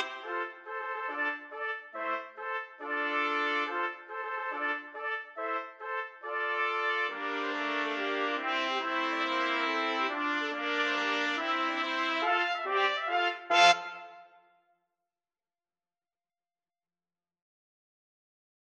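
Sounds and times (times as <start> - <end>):
trumpet: 0.0 - 14.6.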